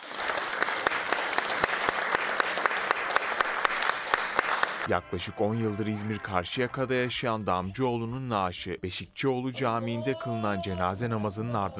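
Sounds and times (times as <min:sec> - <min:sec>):
standing ovation applause: 0:00.0 - 0:05.0
speech: 0:04.9 - 0:11.7.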